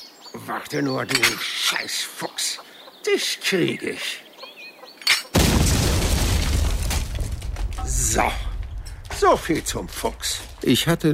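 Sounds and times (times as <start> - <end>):
speech: 0.4 - 4.3, 7.9 - 8.4, 9.2 - 11.1
explosion of explosive charge at henhouse: 5.4 - 10.7.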